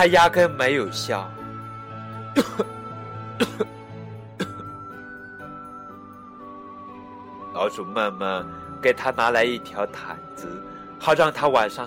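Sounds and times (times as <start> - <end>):
speech: 0.0 - 1.4, 2.3 - 2.8, 3.4 - 3.8, 7.6 - 11.8
loud coughing: 2.4 - 2.8, 3.4 - 4.8.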